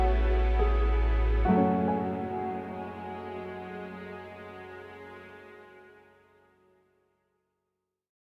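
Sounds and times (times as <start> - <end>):
soundscape: 0.0 - 6.3.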